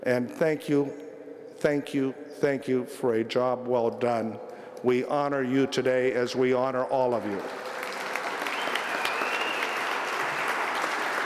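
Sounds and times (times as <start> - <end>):
speech: 0.0 - 1.0, 1.6 - 7.7
audience applause: 7.4 - 11.2.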